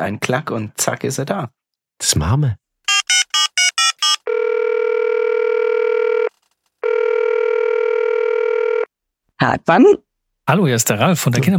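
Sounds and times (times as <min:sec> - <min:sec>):
speech: 0:00.0 - 0:03.2, 0:09.4 - 0:11.5
phone dialing beeps: 0:02.9 - 0:04.2
steady electronic ringback tone on an outgoing call: 0:02.9 - 0:08.9.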